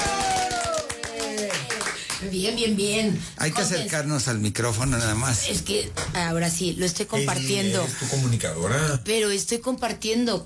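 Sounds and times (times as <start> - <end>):
round of applause: 0.0 - 2.3
speech: 2.3 - 10.4.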